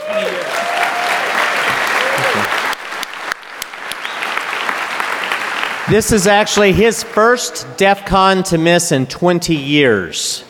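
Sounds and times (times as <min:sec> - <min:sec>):
audience round of applause: 0:00.0 - 0:06.8
speech: 0:05.9 - 0:10.4.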